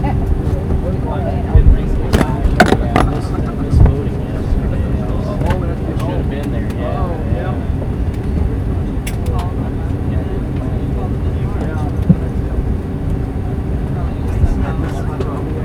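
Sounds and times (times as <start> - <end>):
airplane taking off at SJC: 0.0 - 15.6
murmur of voices: 0.0 - 15.6
sharp clacks and knocks: 2.2 - 3.3.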